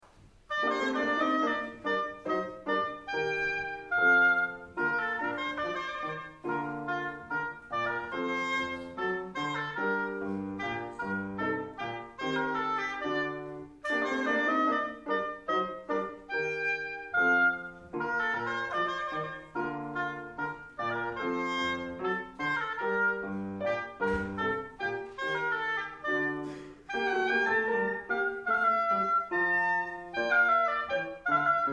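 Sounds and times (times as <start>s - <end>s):
gavotte in concert: 0.0s - 31.7s.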